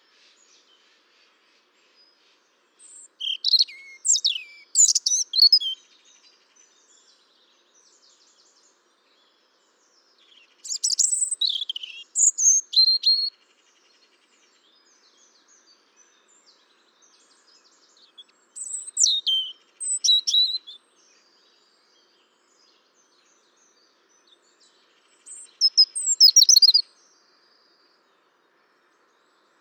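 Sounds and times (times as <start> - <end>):
European robin singing: 2.8 - 13.5, 14.5 - 27.2.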